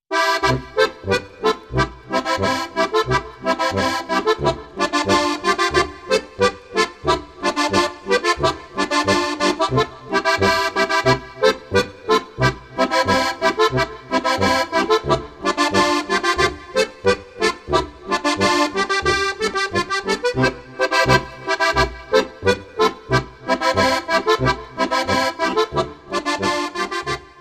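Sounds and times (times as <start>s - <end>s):
accordion polka: 0.1s - 27.3s.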